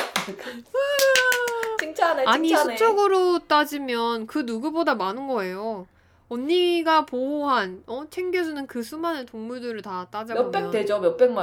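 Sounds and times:
clapping sound effect: 0.0s - 2.0s
speech: 0.3s - 0.8s, 1.8s - 11.4s.

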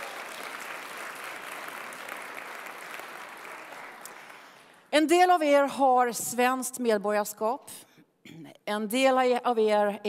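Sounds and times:
audience applause: 0.0s - 4.8s
speech: 4.9s - 10.0s.

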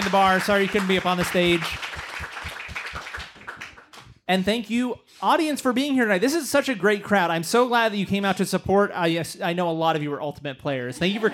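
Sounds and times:
audience applause: 0.0s - 4.1s
speech: 0.1s - 1.9s, 4.3s - 11.3s.

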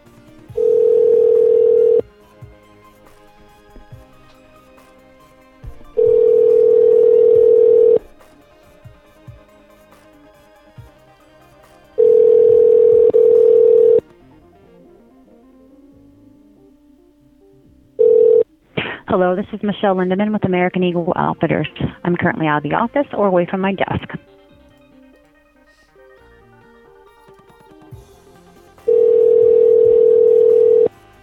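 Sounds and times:
telephone line ringing tone: 0.5s - 2.1s, 5.9s - 8.0s, 12.0s - 14.0s, 18.0s - 18.5s, 28.9s - 30.9s
speech: 19.1s - 24.2s.

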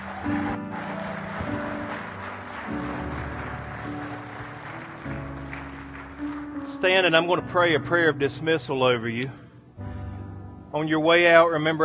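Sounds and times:
audience clapping: 0.0s - 7.1s
sustained organ-like chords: 0.0s - 11.8s
speech: 6.8s - 9.4s, 10.8s - 11.8s.

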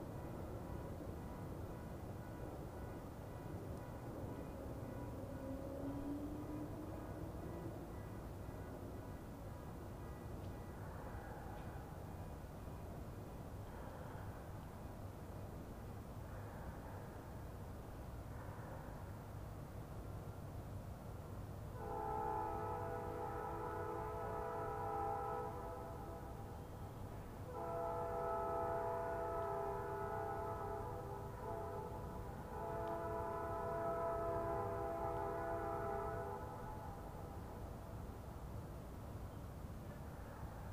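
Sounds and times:
distant train rumbling: 0.0s - 40.7s
train horn blasts: 21.7s - 26.6s, 27.4s - 37.6s.

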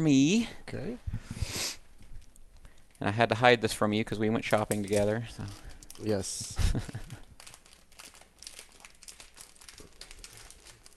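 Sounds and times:
speech: 0.0s - 1.8s, 3.0s - 7.2s
holiday gift wrapping paper torn open: 4.4s - 10.9s.

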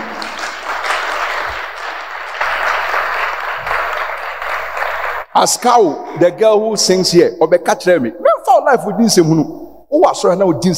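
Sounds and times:
audience clapping: 0.0s - 5.3s
speech: 5.4s - 10.7s.

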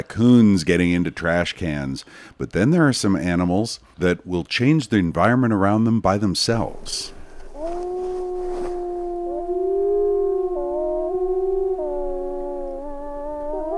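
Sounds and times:
speech: 0.0s - 7.2s
wolves howling: 7.0s - 13.7s.

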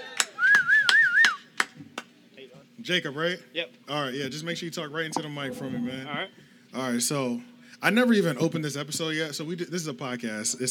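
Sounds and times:
round of applause: 0.0s - 2.1s
whistling: 0.2s - 1.5s
speech: 2.8s - 10.6s.

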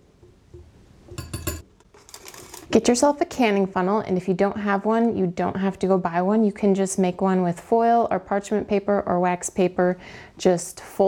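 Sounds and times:
metal whisk clinking against bowl mixing dry ingredients: 0.6s - 1.7s
speech: 2.7s - 11.0s.

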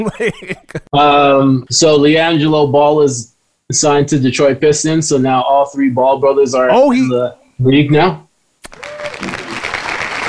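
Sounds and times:
laughter: 0.0s - 0.9s
speech: 0.0s - 8.9s
applause: 8.7s - 10.2s.

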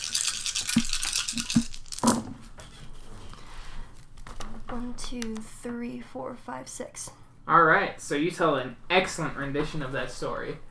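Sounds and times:
dice rattling and rolling: 0.0s - 2.3s
speech: 5.1s - 10.7s.

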